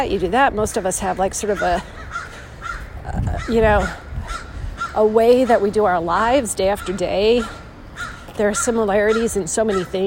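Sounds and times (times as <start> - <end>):
speech: 0.0 - 2.1, 3.1 - 4.4, 5.0 - 7.6, 8.4 - 10.0
crow cawing: 1.6 - 5.1, 6.8 - 10.0.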